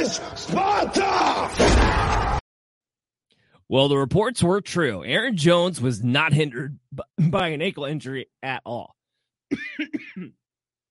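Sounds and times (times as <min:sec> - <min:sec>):
speech: 0:00.0 - 0:02.1, 0:03.7 - 0:10.4
person coughing and choking: 0:06.9 - 0:07.6, 0:09.5 - 0:10.5.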